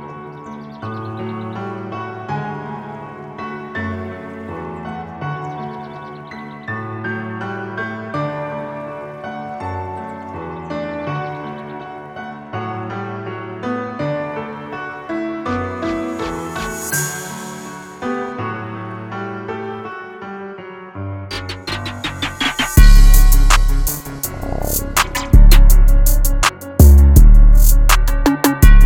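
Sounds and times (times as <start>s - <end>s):
164 bpm drum beats: 21.3s - 28.8s.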